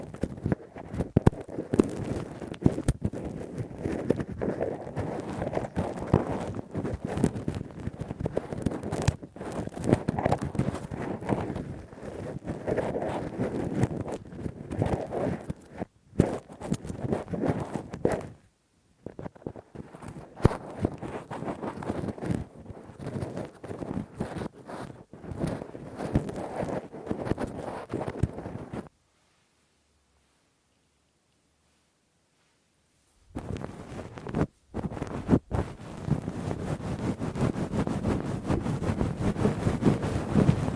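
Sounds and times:
ear cleaning with a Q-tip and ear pick: 0:00.0 - 0:18.4, 0:19.1 - 0:28.9, 0:33.4 - 0:40.7.

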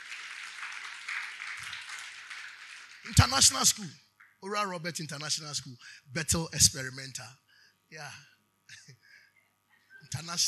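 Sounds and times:
clapping: 0:00.0 - 0:03.6
speech: 0:03.1 - 0:08.9, 0:10.1 - 0:10.4.

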